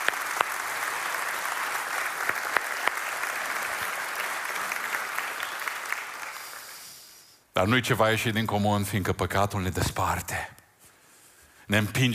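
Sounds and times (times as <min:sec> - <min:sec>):
audience applause: 0:00.0 - 0:06.8
speech: 0:07.6 - 0:10.6, 0:11.7 - 0:12.1.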